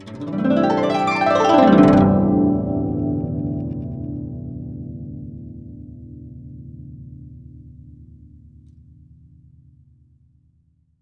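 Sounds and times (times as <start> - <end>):
guqin plucked: 0.0 - 6.1.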